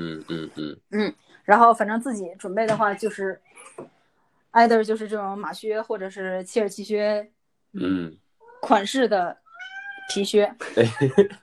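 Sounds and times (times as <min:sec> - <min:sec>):
speech: 0:00.0 - 0:09.4, 0:10.1 - 0:11.4
cat meowing: 0:09.4 - 0:10.3.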